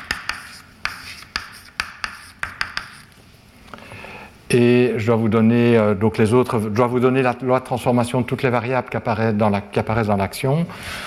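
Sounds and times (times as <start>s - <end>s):
chalk tapping on a board as a lecturer writes equations in a physics class: 0.0s - 3.1s
faint room hiss: 0.0s - 11.0s
speech: 4.5s - 11.0s.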